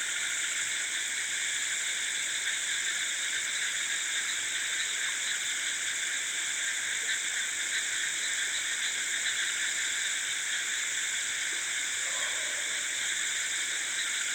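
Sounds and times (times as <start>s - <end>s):
insects in a rice field in chorus at night: 0.0s - 14.3s.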